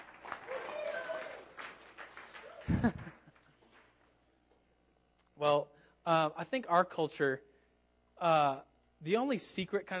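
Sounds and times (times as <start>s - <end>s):
hand clapping applause: 0.0s - 4.0s
laughter: 2.5s - 3.6s
speech: 2.7s - 3.1s, 5.4s - 7.5s, 8.2s - 9.9s.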